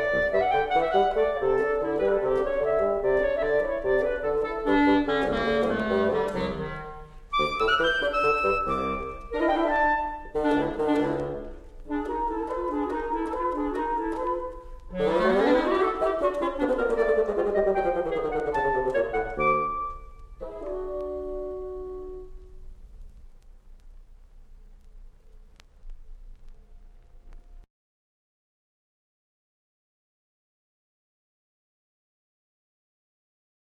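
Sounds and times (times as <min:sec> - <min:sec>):
clarinet and bassoon duet: 0:00.0 - 0:22.4.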